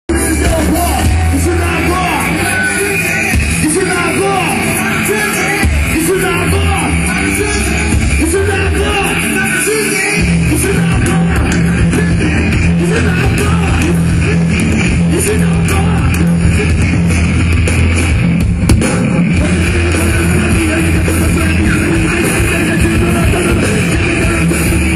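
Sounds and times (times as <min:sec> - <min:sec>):
MIDI music: 0:00.1 - 0:24.9.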